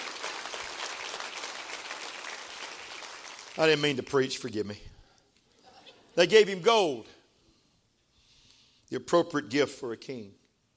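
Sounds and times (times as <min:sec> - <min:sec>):
audience clapping hands: 0:00.0 - 0:04.2
speech: 0:03.6 - 0:05.0, 0:06.2 - 0:07.2, 0:08.9 - 0:10.4.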